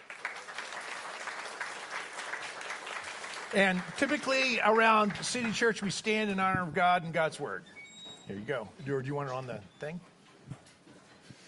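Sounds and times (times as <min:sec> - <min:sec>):
church congregation clapping: 0:00.0 - 0:06.4
speech: 0:03.5 - 0:10.1.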